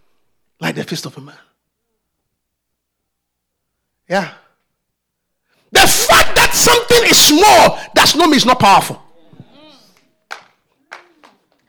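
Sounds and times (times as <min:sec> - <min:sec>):
speech: 0:00.6 - 0:01.5, 0:04.1 - 0:04.4, 0:05.7 - 0:09.0
audience clapping: 0:09.9 - 0:11.6.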